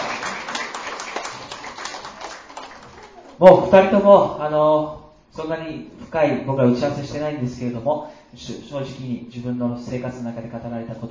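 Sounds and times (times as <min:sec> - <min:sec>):
audience applause: 0:00.0 - 0:03.4
speech: 0:03.4 - 0:11.0.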